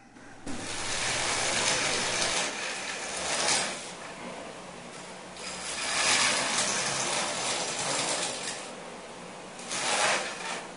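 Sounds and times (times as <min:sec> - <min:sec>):
saw cutting dry ice: 0:00.4 - 0:04.1, 0:05.4 - 0:08.8, 0:09.6 - 0:10.7.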